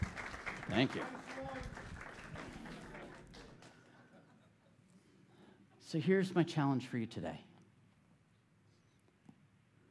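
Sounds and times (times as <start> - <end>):
applause: 0.0 - 3.9
speech: 0.7 - 1.7, 5.9 - 7.5.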